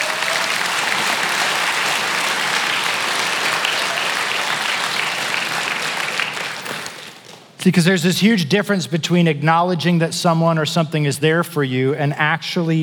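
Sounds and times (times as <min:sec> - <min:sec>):
large audience applause: 0:00.0 - 0:07.4
speech: 0:07.6 - 0:12.8.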